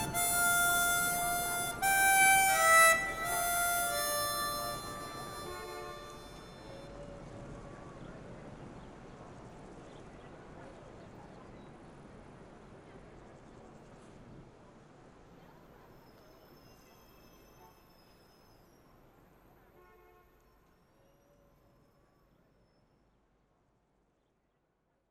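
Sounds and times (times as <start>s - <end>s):
glass armonica: 0.0s - 6.8s.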